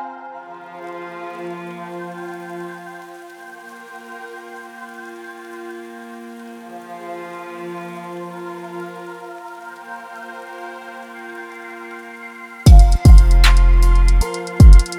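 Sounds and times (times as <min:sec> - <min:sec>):
angry sad trap beat in F minor: 0:12.7 - 0:14.9.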